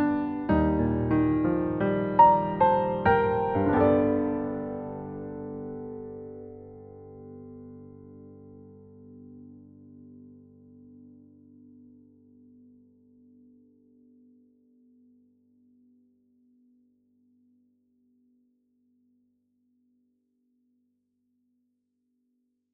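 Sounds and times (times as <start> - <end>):
piano: 0.0 - 14.4.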